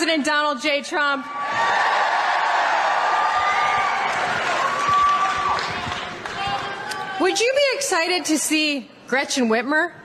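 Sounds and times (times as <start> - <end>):
speech: 0.0 - 2.2, 7.2 - 10.0
rally crowd cheering and whooping: 1.3 - 7.2
scattered claps: 4.0 - 7.2.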